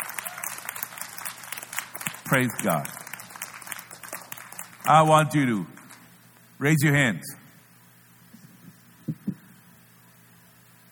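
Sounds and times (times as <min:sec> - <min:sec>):
church congregation clapping during a worship service: 0:00.0 - 0:06.1
speech: 0:02.3 - 0:03.0, 0:04.8 - 0:05.7, 0:06.6 - 0:07.4.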